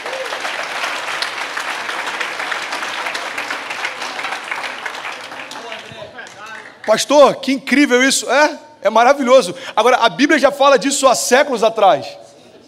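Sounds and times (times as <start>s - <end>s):
audience round of applause: 0.0s - 7.0s
speech: 6.9s - 12.2s.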